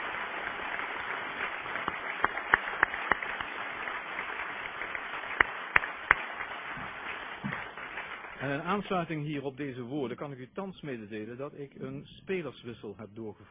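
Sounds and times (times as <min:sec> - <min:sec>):
audience applause: 0:00.0 - 0:09.2
speech: 0:08.4 - 0:13.5.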